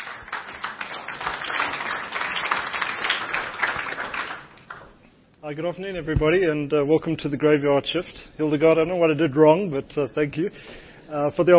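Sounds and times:
audience applause: 0.0s - 4.9s
speech: 5.5s - 11.5s.

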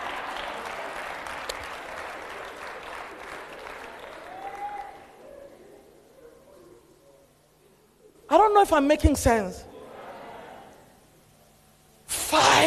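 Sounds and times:
audience clapping: 0.0s - 5.2s
speech: 8.3s - 9.7s.

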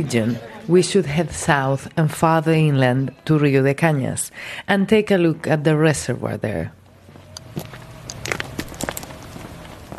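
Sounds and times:
speech: 0.0s - 6.8s
footsteps walking on concrete dam across the reservoir: 7.1s - 9.9s.

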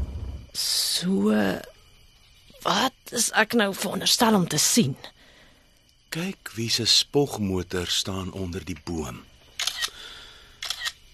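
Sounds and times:
speech: 0.6s - 1.7s, 2.6s - 5.2s, 6.1s - 10.0s
phone camera shutter clicks: 9.6s - 10.0s, 10.6s - 11.0s.

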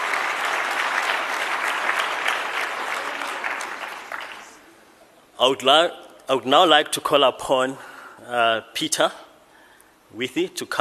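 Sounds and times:
crowd clapping: 0.0s - 4.7s
speech: 5.4s - 9.2s, 10.1s - 10.8s.

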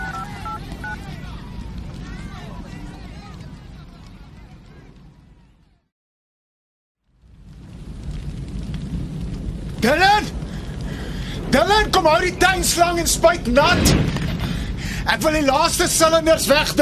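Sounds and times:
touch-tone beeps of a phone number being dialed: 0.0s - 1.0s
speech: 9.8s - 10.4s, 11.5s - 14.2s, 15.1s - 16.7s.

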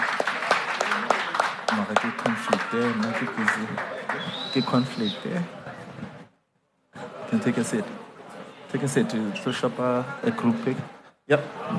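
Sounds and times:
group clapping: 0.0s - 5.1s
speech: 1.8s - 5.8s, 7.3s - 8.1s, 8.7s - 11.7s.

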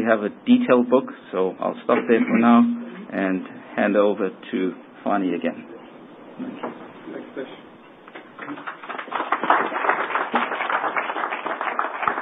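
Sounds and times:
speech: 0.0s - 5.7s, 6.4s - 7.6s
audience applause: 8.4s - 12.2s.

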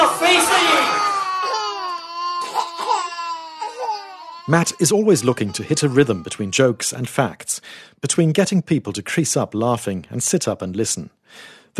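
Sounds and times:
babies crying across the entire plane: 0.0s - 7.0s
speech: 4.5s - 11.7s.

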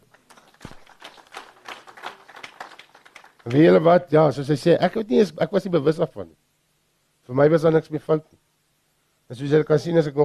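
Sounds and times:
audience clapping: 0.0s - 3.8s
speech: 3.4s - 6.4s, 7.3s - 8.4s, 9.3s - 10.2s.

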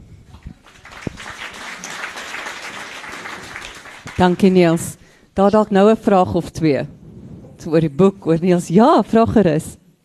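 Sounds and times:
applause: 0.4s - 4.6s
speech: 4.2s - 7.0s, 7.6s - 9.8s.

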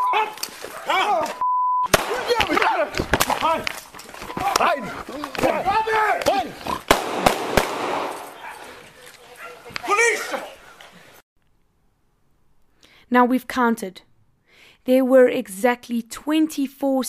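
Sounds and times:
dog barking: 0.0s - 1.3s, 4.7s - 5.2s, 8.3s - 10.5s
raised voices: 0.0s - 7.4s, 8.2s - 11.2s
speech: 0.1s - 3.8s, 4.4s - 6.8s, 13.1s - 14.1s, 14.8s - 17.0s
gunshots in recorded footage of a police confrontation: 1.9s - 3.7s, 6.9s - 8.4s.

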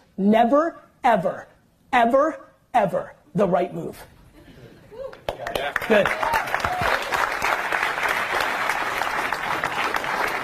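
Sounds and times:
speech: 0.2s - 4.1s, 5.4s - 6.8s
audience applause and clapping: 5.1s - 10.4s.

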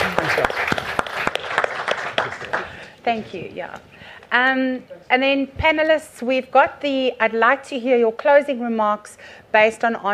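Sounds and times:
audience applauding: 0.0s - 2.9s
speech: 3.1s - 10.1s.

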